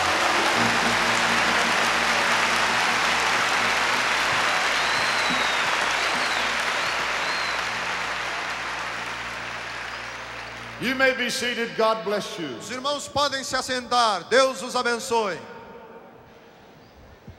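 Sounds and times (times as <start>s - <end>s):
audience applauding: 0.0s - 11.2s
speech: 10.9s - 15.5s.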